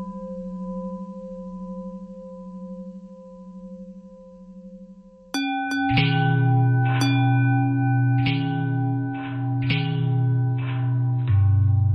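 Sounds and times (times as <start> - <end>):
longbell bells ringing: 5.4 - 11.8.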